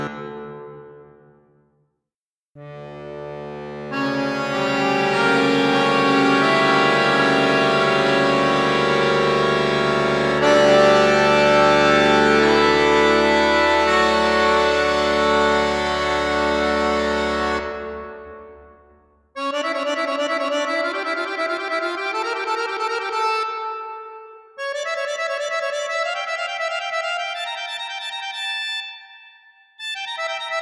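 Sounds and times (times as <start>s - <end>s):
accordion on 16 8 8 4 register: 0.0s - 1.2s, 2.6s - 30.6s.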